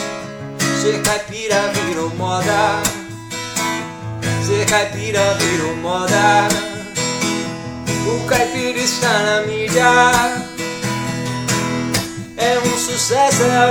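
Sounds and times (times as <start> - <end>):
acoustic guitar: 0.0 - 13.7
caipira voice singing: 0.6 - 3.2, 4.3 - 7.2, 7.9 - 10.6, 12.2 - 13.7.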